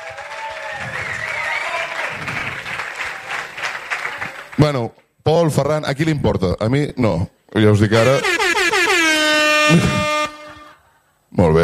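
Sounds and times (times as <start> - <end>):
audience applause: 0.0 - 4.6
speech: 4.6 - 8.4, 9.7 - 10.1, 11.4 - 11.6.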